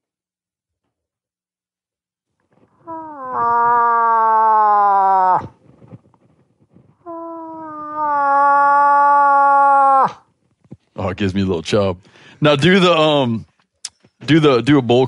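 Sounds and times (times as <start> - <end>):
person imitating a cow moose call: 2.8 - 5.6, 7.1 - 10.2
speech: 11.2 - 13.5, 14.3 - 15.0.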